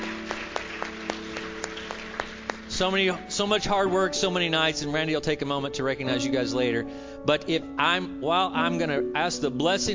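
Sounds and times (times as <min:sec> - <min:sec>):
scattered audience hand claps: 0:00.0 - 0:02.9
speech: 0:02.8 - 0:09.9.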